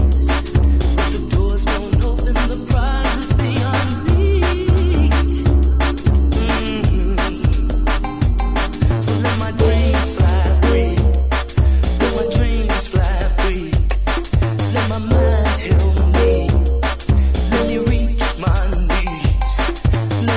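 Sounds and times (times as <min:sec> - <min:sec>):
bass drum: 0:00.0 - 0:20.3.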